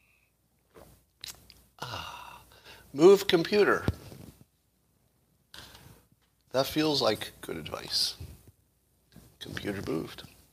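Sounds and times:
sipping a drink: 0.7 - 2.4
speech: 2.9 - 4.0, 6.6 - 8.3, 9.6 - 10.3.

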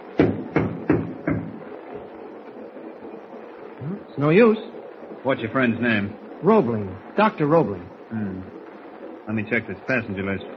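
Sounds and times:
knocking on a door: 0.2 - 1.7
speech: 4.2 - 8.6, 9.3 - 10.5.

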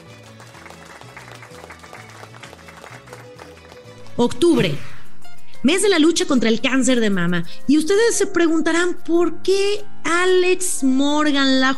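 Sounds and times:
audience applause: 0.0 - 4.0
speech: 4.2 - 4.9, 5.6 - 11.7.

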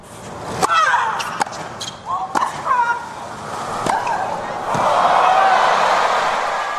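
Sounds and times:
tennis match play between Serena and Venus Williams: 0.0 - 6.7.

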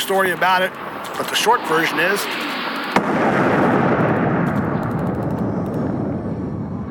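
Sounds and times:
speech: 0.1 - 2.5, 3.1 - 3.6
explosion of a bomb hidden in phone: 1.7 - 6.8.

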